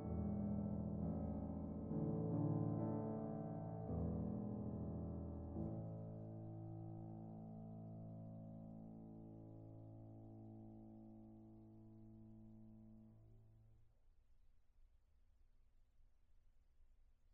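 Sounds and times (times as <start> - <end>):
piano: 0.0 - 13.4.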